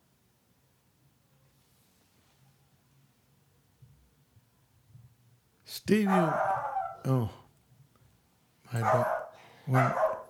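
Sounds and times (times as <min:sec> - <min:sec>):
speech: 0:05.7 - 0:07.4, 0:08.7 - 0:10.1
dog barking at the door: 0:06.0 - 0:07.1, 0:08.7 - 0:10.2.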